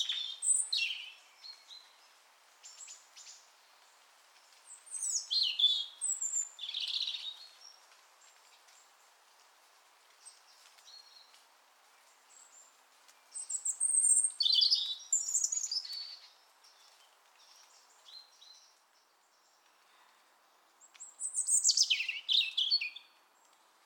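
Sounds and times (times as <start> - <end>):
European robin Erithacus rubecula giving shrill whistles and descending trills: 0.0 - 1.9, 4.9 - 7.7, 13.3 - 16.3, 21.0 - 23.1.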